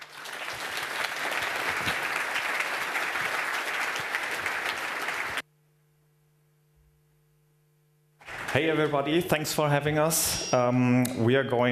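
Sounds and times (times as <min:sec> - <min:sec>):
crowd applause: 0:00.0 - 0:05.4, 0:08.2 - 0:09.6
speech: 0:08.6 - 0:11.7.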